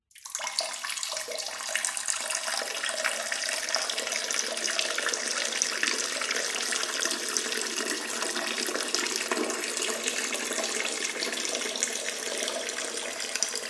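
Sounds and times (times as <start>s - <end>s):
man urinating in toilet: 0.1s - 13.6s.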